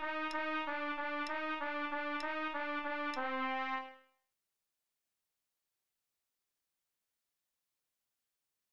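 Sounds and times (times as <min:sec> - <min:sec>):
trumpet duet for lessons: 0:00.0 - 0:04.1.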